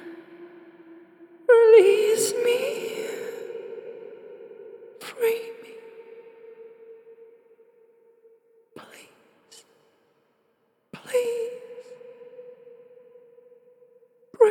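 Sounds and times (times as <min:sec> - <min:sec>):
ghostly female horror voice: 0:00.0 - 0:07.6, 0:11.0 - 0:13.2.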